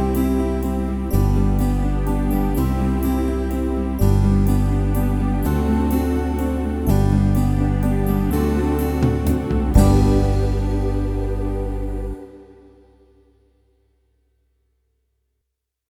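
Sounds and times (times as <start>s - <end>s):
backing music: 0.0s - 12.5s.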